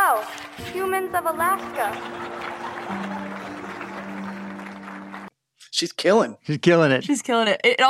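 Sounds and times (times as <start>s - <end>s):
applause: 0.0s - 5.3s
speech: 0.2s - 3.2s, 5.8s - 7.8s
laughter: 1.9s - 4.0s.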